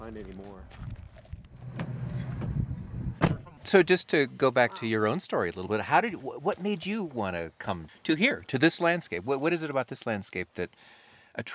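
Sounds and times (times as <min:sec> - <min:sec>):
speech: 0:00.1 - 0:01.1, 0:03.6 - 0:11.5
car driving down a desert road: 0:01.5 - 0:03.6.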